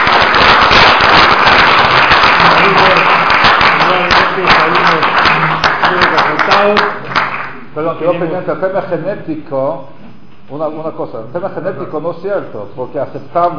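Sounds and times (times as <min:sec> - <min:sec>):
audience applause: 0:00.0 - 0:07.6
speech: 0:06.6 - 0:07.0, 0:07.8 - 0:13.5.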